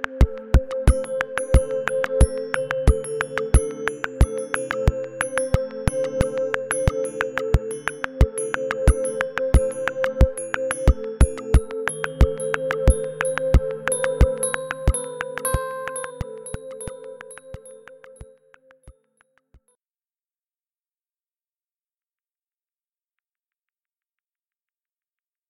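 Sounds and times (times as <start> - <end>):
piano: 0.3 - 18.2.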